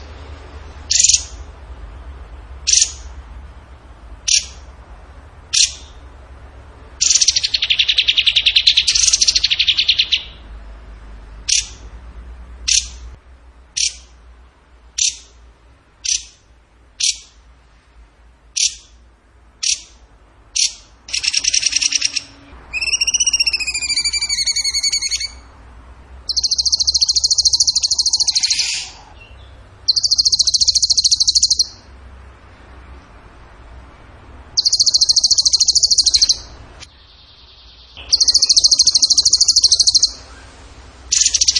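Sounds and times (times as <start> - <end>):
bird trilling: 0.9 - 1.4, 2.7 - 3.1, 4.2 - 4.7, 5.5 - 6.0, 7.0 - 10.4, 11.4 - 11.8, 12.6 - 13.0, 13.8 - 14.1, 15.0 - 15.4, 16.0 - 16.4, 17.0 - 17.4, 18.6 - 19.0, 19.6 - 20.0, 20.6 - 25.5, 26.3 - 31.9, 34.6 - 40.5, 41.1 - 41.5.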